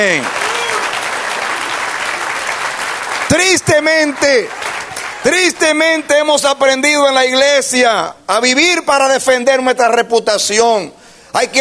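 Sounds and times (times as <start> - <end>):
speech: 0.0 - 0.4, 3.3 - 4.6, 5.2 - 11.5
audience applause: 0.0 - 6.1.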